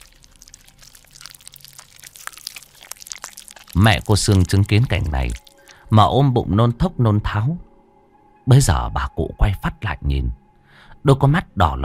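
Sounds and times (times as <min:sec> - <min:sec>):
crunchy chewing of raw frogs: 0:00.0 - 0:06.0
speech: 0:03.8 - 0:07.7, 0:08.5 - 0:10.4, 0:11.0 - 0:11.8.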